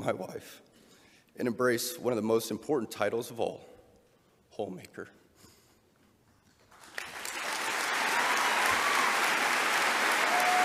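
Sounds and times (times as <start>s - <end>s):
speech: 0.0s - 0.7s, 1.4s - 3.7s, 4.5s - 5.2s
audience applauding: 6.7s - 10.6s.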